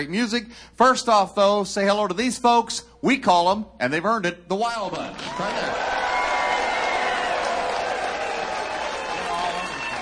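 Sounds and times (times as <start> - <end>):
speech: 0.0 - 6.0
studio audience at a live music show applauding and cheering: 5.0 - 9.9.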